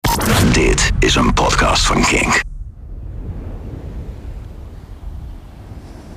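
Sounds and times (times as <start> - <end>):
wind rumble on empty beach: 0.1 - 6.1
speech: 0.6 - 2.5
surf washing on empty beach: 3.1 - 6.1.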